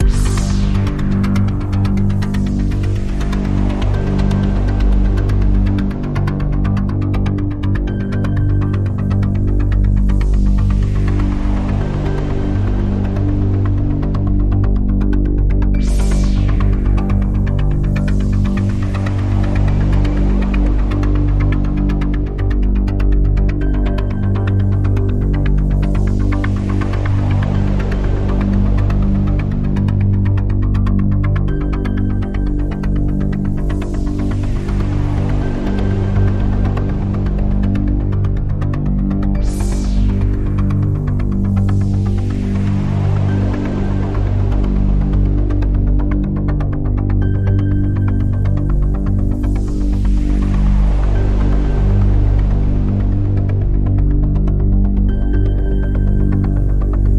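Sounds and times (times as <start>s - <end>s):
synth pad: 0.0s - 57.1s.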